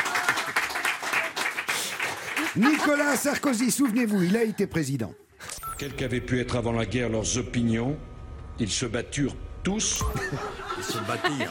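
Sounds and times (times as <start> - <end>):
crowd clapping: 0.0 - 4.2
laughter: 2.2 - 4.6, 10.0 - 11.4
speech: 2.6 - 5.2, 5.8 - 11.4.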